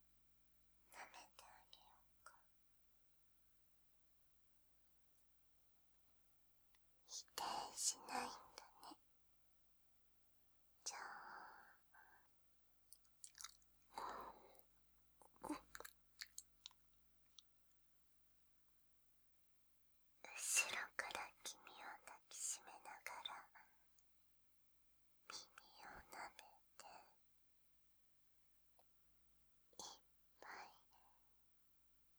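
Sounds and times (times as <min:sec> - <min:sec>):
sweet ASMR whispering: 0:00.9 - 0:02.5, 0:07.1 - 0:09.0, 0:10.8 - 0:12.3, 0:13.9 - 0:14.6, 0:15.3 - 0:16.4, 0:20.2 - 0:23.8, 0:25.3 - 0:27.2, 0:29.8 - 0:31.3
ASMR ear licking sounds in the right ear: 0:13.0 - 0:13.7, 0:15.5 - 0:16.8.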